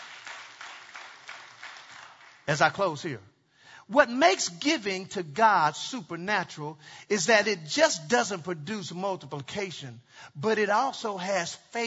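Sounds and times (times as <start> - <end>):
audience clapping: 0.0 - 3.0
speech: 2.5 - 3.3, 3.9 - 11.8.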